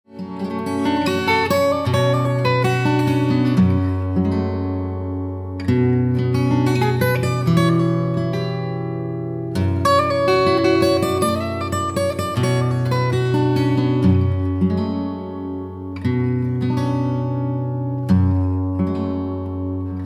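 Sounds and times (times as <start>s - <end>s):
cantilena lyrical melody: 0.2s - 20.0s.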